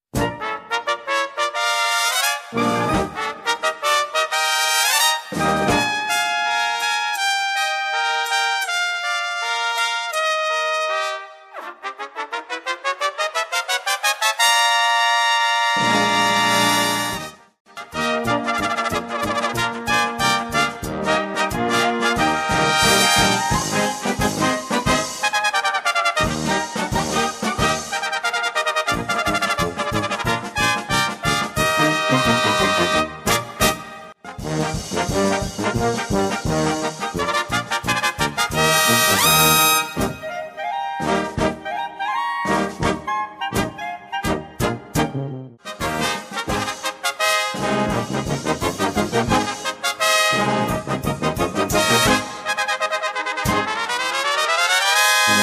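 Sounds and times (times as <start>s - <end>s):
three trumpets playing a gallop: 0.2s - 55.4s.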